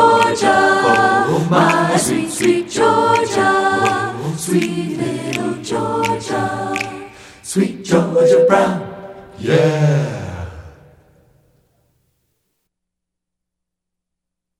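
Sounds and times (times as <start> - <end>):
a cappella singing: 0.0 - 10.9.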